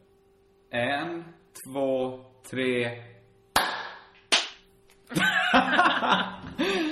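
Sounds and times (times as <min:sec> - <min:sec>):
speech: 0:00.7 - 0:03.1, 0:05.1 - 0:06.9
group clapping together: 0:03.6 - 0:04.6
people laughing: 0:05.1 - 0:06.9.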